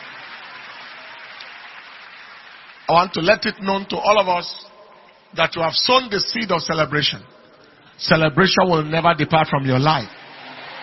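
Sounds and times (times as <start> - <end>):
church congregation clapping for the Lord during a service: 0.0 - 6.5, 10.1 - 10.8
speech: 2.9 - 4.7, 5.3 - 7.4, 8.0 - 10.2.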